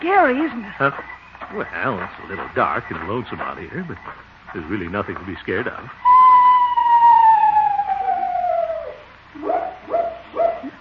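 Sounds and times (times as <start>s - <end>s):
speech: 0.0s - 6.1s, 9.4s - 9.6s
screech owl call: 6.0s - 10.7s.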